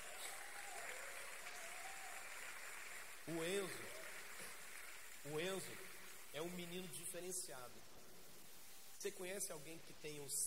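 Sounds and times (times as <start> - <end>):
audience applause: 0.0 - 6.4
speech: 3.3 - 4.0, 5.2 - 8.1, 9.0 - 10.4.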